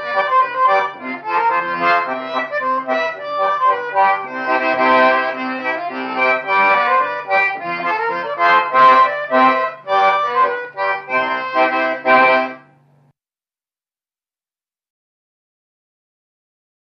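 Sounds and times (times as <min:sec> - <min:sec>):
folk polka music: 0:00.0 - 0:12.8.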